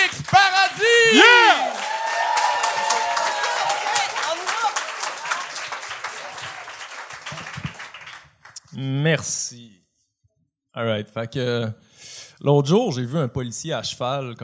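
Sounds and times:
live crowd applause: 0.0s - 8.6s
cheers and whoops: 0.3s - 6.8s
speech: 9.0s - 9.7s, 10.8s - 14.4s.

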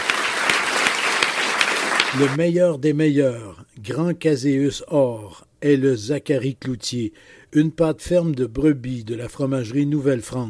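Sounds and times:
audience applause: 0.0s - 2.4s
speech: 2.1s - 10.4s.

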